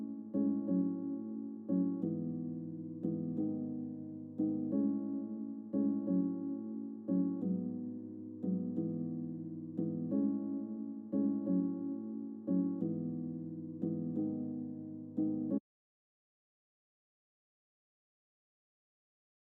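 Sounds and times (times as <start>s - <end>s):
piano: 0.0s - 15.6s.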